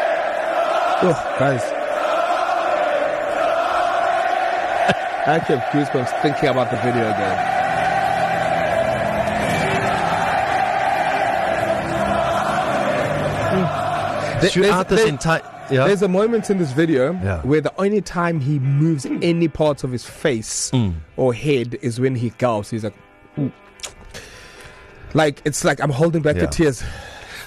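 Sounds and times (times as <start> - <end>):
80,000 Irishmen and women singing in a stadium: 0.0 - 16.5
speech: 1.0 - 1.8, 4.9 - 7.6, 14.4 - 23.6, 25.2 - 27.4.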